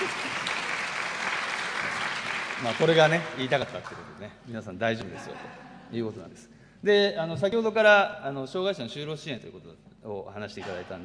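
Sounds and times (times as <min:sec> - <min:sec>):
laughter: 0:00.0 - 0:00.6, 0:05.0 - 0:06.1
audience applause at a talk: 0:00.0 - 0:04.3
speech: 0:02.6 - 0:11.0.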